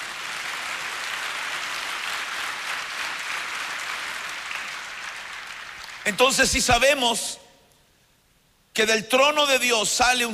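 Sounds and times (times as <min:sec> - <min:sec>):
audience applause: 0:00.0 - 0:06.1
speech: 0:06.1 - 0:07.4, 0:08.8 - 0:10.3.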